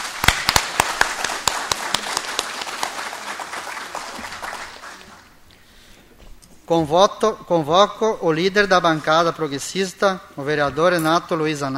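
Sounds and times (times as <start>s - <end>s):
applause for an honoree: 0.0s - 5.4s
speech: 6.7s - 11.7s.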